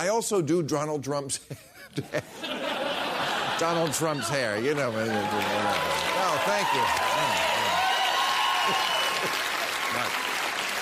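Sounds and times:
speech: 0.0s - 2.7s, 3.6s - 7.5s, 8.7s - 9.4s
laughter: 1.5s - 6.6s
audience applause: 3.3s - 10.8s.

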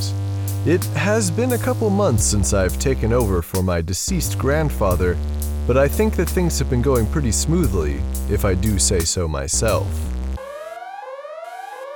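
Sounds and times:
speech: 0.6s - 10.2s
alarm going off: 10.4s - 11.9s.

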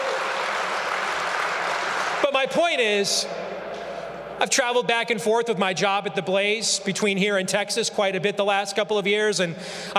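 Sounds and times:
applause: 0.0s - 2.6s
speech: 2.4s - 3.6s, 4.4s - 9.9s.

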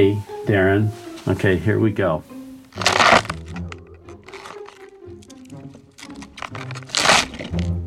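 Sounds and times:
speech: 0.0s - 2.3s
celery stalk crunched and snapped as bone-crushing foley: 2.7s - 7.8s.

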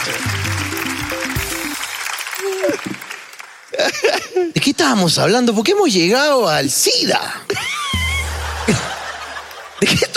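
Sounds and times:
applause: 0.0s - 4.0s
laughter: 3.7s - 4.6s, 7.5s - 10.1s
speech: 4.4s - 7.8s, 8.7s - 8.9s, 9.8s - 10.1s.

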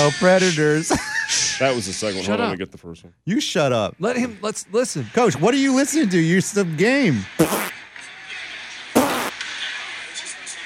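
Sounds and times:
speech: 0.0s - 7.8s
fart: 7.4s - 7.8s, 9.0s - 9.4s.

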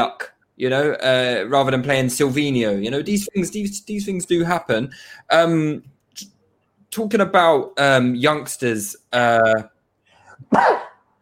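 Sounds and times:
speech: 0.0s - 6.3s, 6.9s - 9.7s, 10.4s - 10.9s
sneeze: 10.5s - 11.0s.

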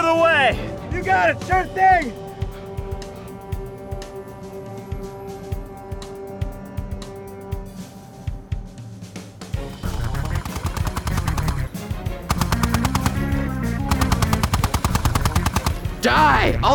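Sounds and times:
speech: 0.1s - 2.3s, 16.0s - 16.7s
machine gun fire: 9.8s - 16.0s.

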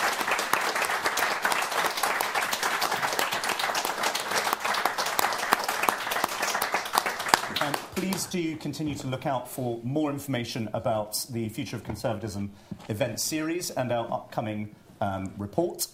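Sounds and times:
audience applause: 0.0s - 8.5s
speech: 8.0s - 15.9s.

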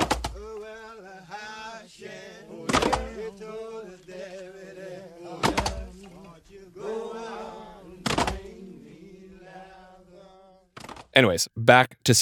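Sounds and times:
axes chopping logs: 0.0s - 0.4s, 2.7s - 3.1s
prison work song sung by Black men: 0.0s - 10.7s
speech: 11.2s - 12.2s.

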